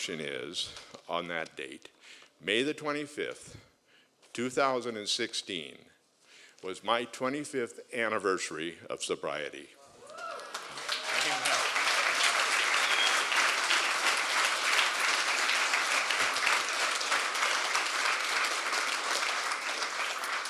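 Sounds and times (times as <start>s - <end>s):
speech: 0.0s - 3.7s, 4.4s - 5.9s, 6.6s - 9.8s
group clapping and applause: 10.1s - 20.4s.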